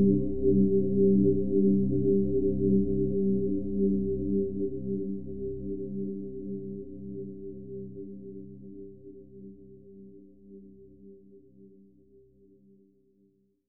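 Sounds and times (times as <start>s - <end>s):
bass: 0.0s - 9.8s.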